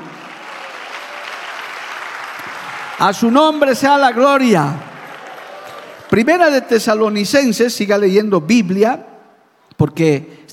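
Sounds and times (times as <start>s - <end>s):
audience applauding: 0.0s - 6.6s
speech: 3.0s - 4.9s, 6.1s - 9.1s, 9.8s - 10.5s.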